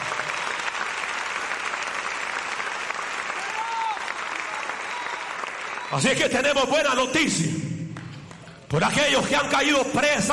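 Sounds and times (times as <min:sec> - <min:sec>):
audience applause: 0:00.0 - 0:06.2
speech: 0:05.9 - 0:07.7, 0:08.7 - 0:10.3.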